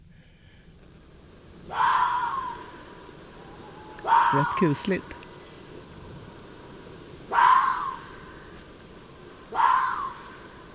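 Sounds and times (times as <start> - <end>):
hiss: 0.0 - 10.7
fox screaming: 1.7 - 2.8, 3.4 - 4.9, 7.3 - 8.5, 9.5 - 10.5
speech: 4.3 - 5.2.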